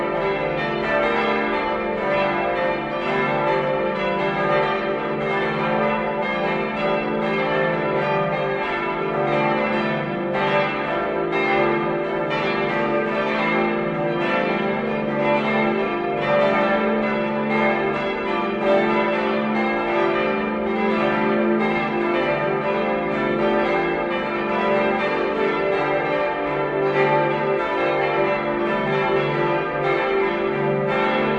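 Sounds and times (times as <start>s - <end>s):
multi-voice bell peal tuned d1 e1 g1 a1 h1 d2: 0.0s - 31.3s.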